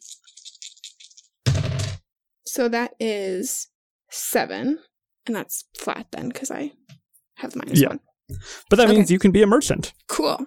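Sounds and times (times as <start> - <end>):
dice rattling: 0.0 - 2.0
speech: 2.6 - 10.4.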